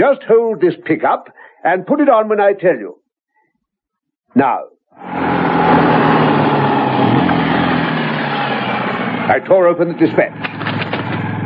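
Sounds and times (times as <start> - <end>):
speech: 0.0 - 3.0, 4.4 - 5.2, 9.3 - 10.6
engine drone of a messenger's vehicle driving up at Catania Italy: 5.0 - 11.4.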